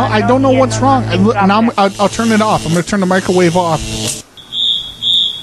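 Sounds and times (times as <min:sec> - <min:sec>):
speech: 0:00.1 - 0:04.3
smoke alarm going off: 0:02.0 - 0:05.4.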